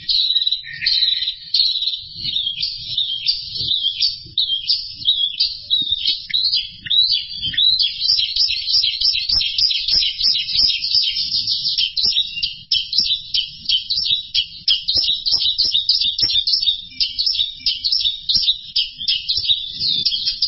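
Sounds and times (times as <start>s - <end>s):
bird song with buzzy twittering and whistled notes: 0.0s - 20.4s.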